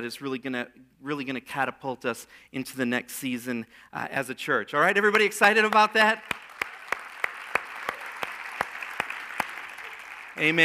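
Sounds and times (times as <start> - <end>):
speech: 0.0 - 6.5, 10.4 - 10.6
audience clapping: 5.2 - 10.6.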